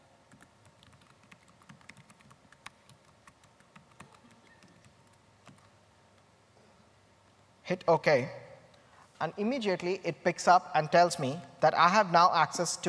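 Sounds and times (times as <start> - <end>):
typing on a computer keyboard: 0.3 - 5.7
speech: 7.7 - 8.4, 9.2 - 12.8.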